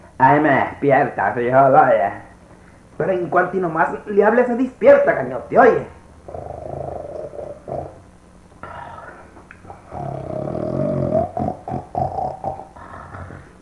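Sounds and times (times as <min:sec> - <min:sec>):
speech: 0:00.2 - 0:02.3, 0:03.0 - 0:06.6
person snoring: 0:06.3 - 0:08.0, 0:08.6 - 0:13.6.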